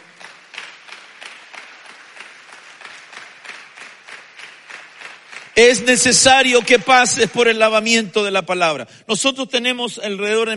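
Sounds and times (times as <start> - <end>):
audience clapping hands: 0.0 - 8.1
speech: 5.6 - 10.5.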